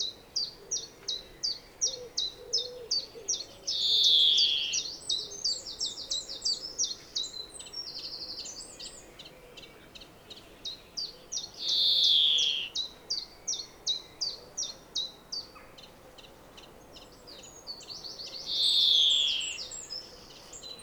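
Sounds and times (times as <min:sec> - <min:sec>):
European greenfinch chirps and wheezes: 0:03.7 - 0:04.9, 0:11.6 - 0:12.8, 0:18.5 - 0:19.8.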